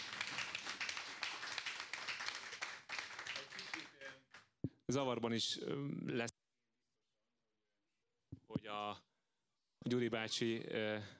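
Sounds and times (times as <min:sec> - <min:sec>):
audience applause: 0:00.0 - 0:04.4
speech: 0:04.9 - 0:06.4, 0:08.7 - 0:09.1, 0:09.8 - 0:11.1.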